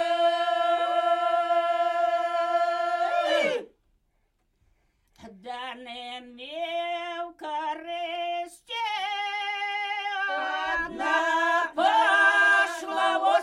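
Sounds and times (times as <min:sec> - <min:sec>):
polyphonic singing from Polesie in Ukraine: 0:00.0 - 0:03.6, 0:06.6 - 0:13.4.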